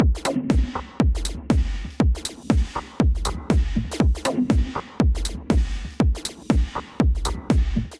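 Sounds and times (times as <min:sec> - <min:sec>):
drum kit: 0:00.0 - 0:07.9.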